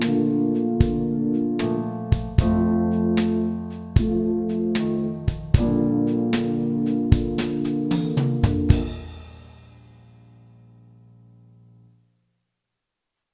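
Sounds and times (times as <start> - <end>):
slow brass music: 0.0 - 9.4.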